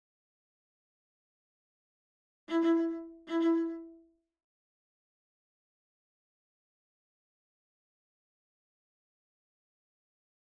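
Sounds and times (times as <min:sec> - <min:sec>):
viola: 0:02.5 - 0:04.0.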